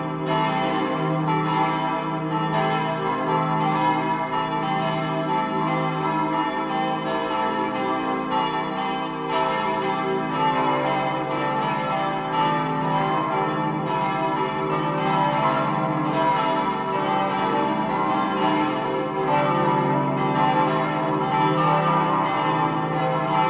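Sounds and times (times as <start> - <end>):
full peal of church bells of a minster: 0.0 - 23.4.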